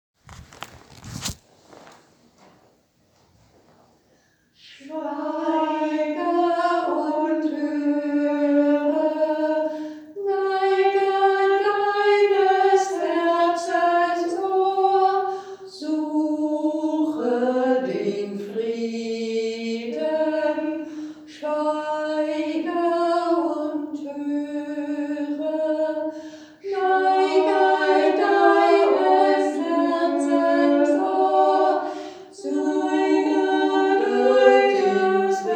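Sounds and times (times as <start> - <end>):
singing: 4.6 - 35.5.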